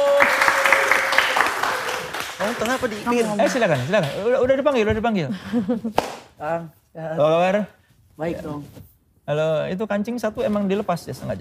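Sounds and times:
audience applause welcoming two performers: 0:00.0 - 0:04.3
speech: 0:02.6 - 0:11.3.

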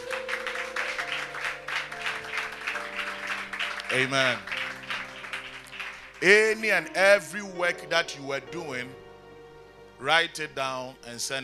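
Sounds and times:
audience applause: 0:00.0 - 0:06.8
speech: 0:03.9 - 0:04.5, 0:06.2 - 0:09.0, 0:10.0 - 0:11.4.

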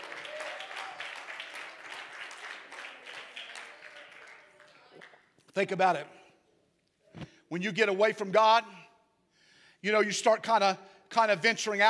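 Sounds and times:
audience clapping hands: 0:00.0 - 0:06.2
speech: 0:05.6 - 0:06.2, 0:07.5 - 0:08.8, 0:09.8 - 0:11.8.

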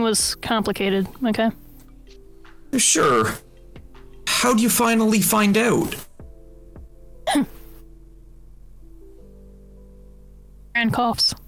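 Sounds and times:
speech: 0:00.0 - 0:01.6, 0:02.7 - 0:03.4, 0:04.4 - 0:06.1, 0:07.3 - 0:07.5, 0:10.8 - 0:11.4
faint steady hum: 0:00.0 - 0:11.4
person coughing: 0:07.3 - 0:07.7.

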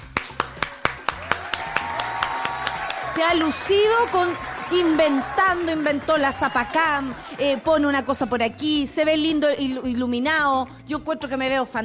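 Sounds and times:
hand clapping as applause for a camera operator: 0:00.0 - 0:07.7
speech: 0:03.2 - 0:11.8.

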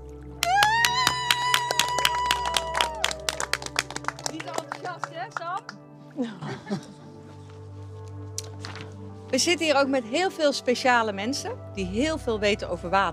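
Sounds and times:
audience applause: 0:00.4 - 0:05.8
laughter: 0:06.2 - 0:07.6
speech: 0:09.4 - 0:13.1.

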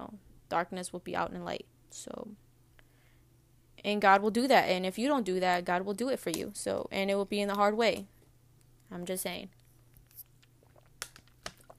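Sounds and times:
speech: 0:00.1 - 0:02.4, 0:03.8 - 0:08.1, 0:08.9 - 0:09.6
person drinking water: 0:10.0 - 0:11.7.

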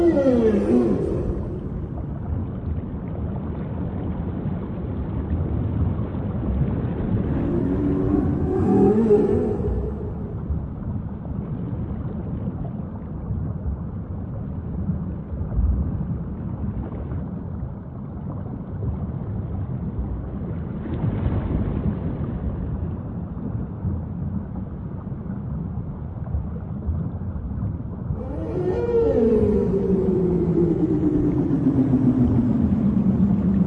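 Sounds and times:
whale calls: 0:00.0 - 0:02.4, 0:07.1 - 0:11.0, 0:28.2 - 0:33.6
constant low rumbling wash: 0:00.0 - 0:33.6.

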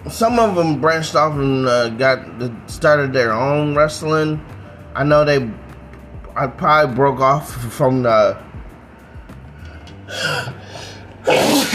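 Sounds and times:
speech: 0:00.1 - 0:05.6, 0:06.4 - 0:08.5, 0:10.1 - 0:10.6, 0:11.2 - 0:11.7
sneeze: 0:11.2 - 0:11.7.

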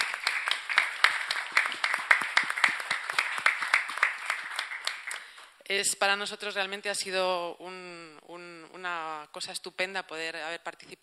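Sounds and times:
group of people clapping: 0:00.0 - 0:05.6
speech: 0:05.7 - 0:07.9, 0:08.8 - 0:11.0.

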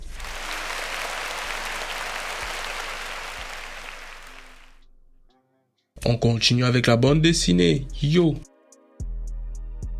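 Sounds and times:
group applause: 0:00.0 - 0:04.8
speech: 0:06.1 - 0:08.5.

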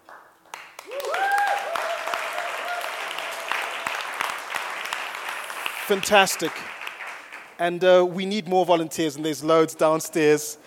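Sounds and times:
church audience applause: 0:00.5 - 0:07.6
speech: 0:05.9 - 0:06.8, 0:07.6 - 0:10.6.

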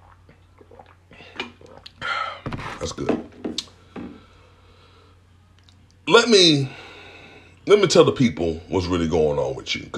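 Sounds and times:
person drinking lime water: 0:00.0 - 0:03.0
speech: 0:02.8 - 0:03.4, 0:06.2 - 0:06.8, 0:07.7 - 0:09.9.

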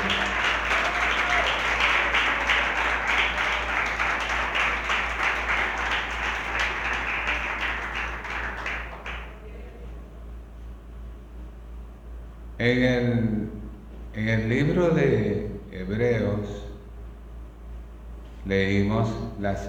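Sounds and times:
audience applause: 0:00.0 - 0:09.4
low steady hum: 0:00.0 - 0:19.6
speech: 0:12.6 - 0:13.4, 0:14.2 - 0:16.5, 0:18.5 - 0:19.6.

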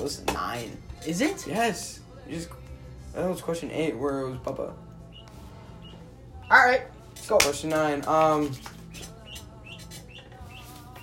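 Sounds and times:
speech: 0:00.0 - 0:04.9, 0:06.5 - 0:08.7
ducks peeping: 0:05.0 - 0:06.8, 0:08.0 - 0:11.0.

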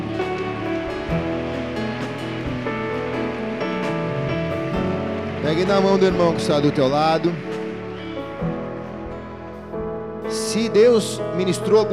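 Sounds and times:
audience applauding loudly: 0:00.9 - 0:08.6
speech: 0:05.5 - 0:07.5, 0:10.5 - 0:11.9.

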